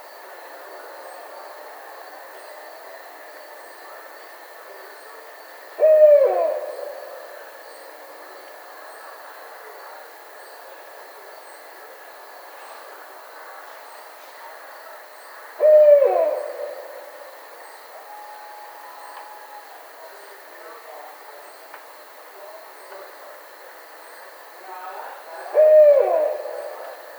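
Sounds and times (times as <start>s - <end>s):
Barred owl hooting: 5.8s - 7.3s, 15.6s - 20.0s, 25.4s - 27.1s.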